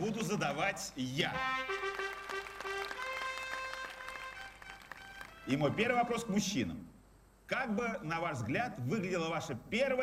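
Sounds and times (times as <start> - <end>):
speech: 0.0 - 1.8, 5.5 - 10.0
audience applause: 1.7 - 5.6.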